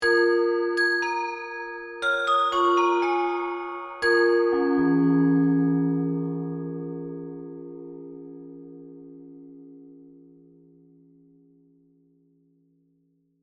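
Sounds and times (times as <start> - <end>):
mysterious Chinese oriental bells accent: 0.0 - 7.7.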